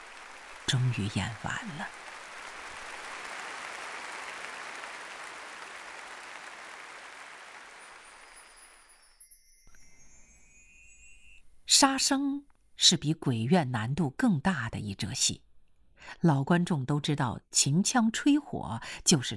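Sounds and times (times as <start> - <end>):
thunderous crowd applause in theater: 0.0 - 8.5
speech: 0.7 - 2.1, 11.8 - 19.3
thin high tone: 7.7 - 11.6
faint clinks: 8.1 - 11.6.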